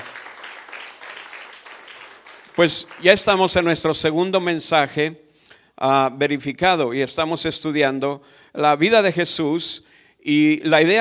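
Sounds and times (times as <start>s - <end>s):
audience applause: 0.0s - 3.6s
speech: 2.6s - 5.2s, 5.8s - 10.9s.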